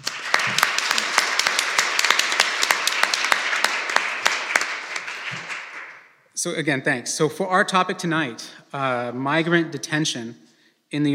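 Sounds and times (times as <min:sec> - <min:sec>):
audience applause: 0:00.0 - 0:06.0
speech: 0:06.4 - 0:11.1.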